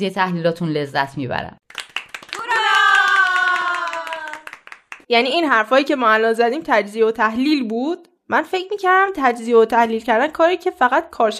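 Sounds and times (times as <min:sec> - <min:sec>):
speech: 0:00.0 - 0:01.7, 0:05.1 - 0:11.3
people clapping: 0:01.6 - 0:05.1.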